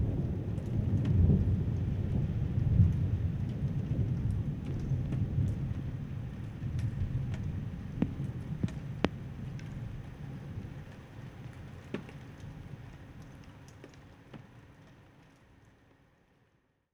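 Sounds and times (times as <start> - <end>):
thunder: 0.0 - 10.7.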